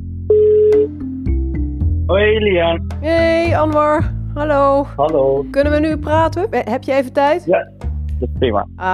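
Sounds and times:
telephone ringing on an outgoing call: 0:00.3 - 0:01.0
speech: 0:02.1 - 0:08.9.

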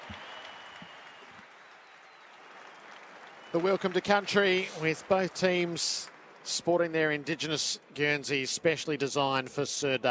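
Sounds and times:
audience applause: 0:00.0 - 0:07.5
speech: 0:03.5 - 0:10.0.

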